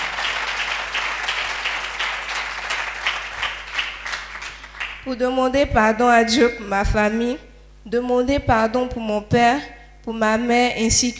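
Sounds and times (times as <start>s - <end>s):
applause at a religious retreat: 0.0s - 5.0s
speech: 5.0s - 11.1s.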